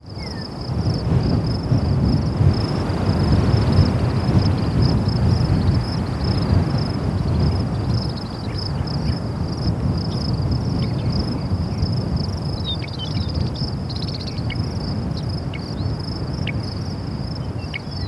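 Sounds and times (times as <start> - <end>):
crickets chirping at night: 0.0 - 18.0.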